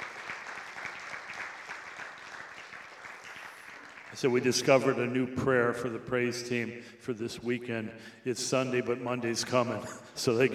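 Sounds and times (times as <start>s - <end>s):
crowd applauding the praise team: 0.0s - 4.9s
speech: 4.2s - 10.5s.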